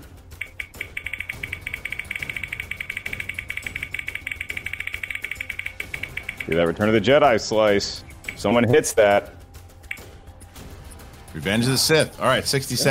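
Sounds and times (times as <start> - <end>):
game show prize wheel spinning: 0.4 - 7.2, 8.0 - 8.7
speech: 6.5 - 9.3, 11.4 - 12.8.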